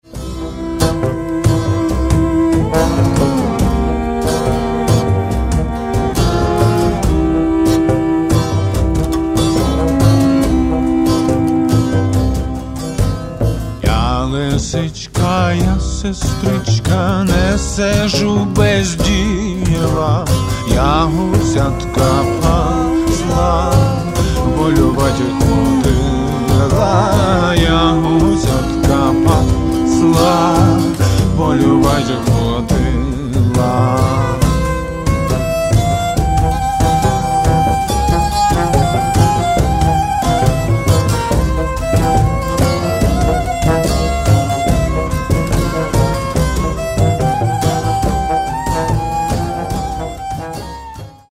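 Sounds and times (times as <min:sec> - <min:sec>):
bluegrass band: 0:00.0 - 0:51.3.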